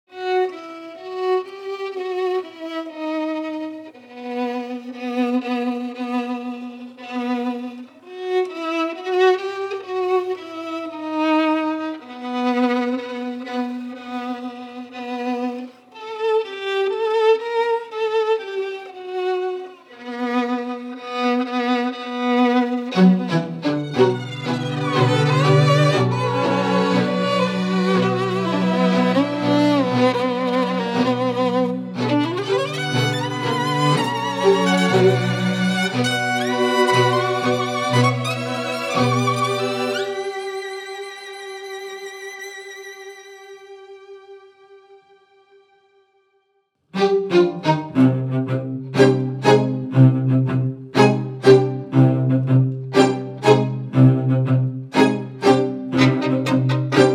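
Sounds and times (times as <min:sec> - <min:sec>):
strings music for end titles: 0:00.0 - 0:57.1.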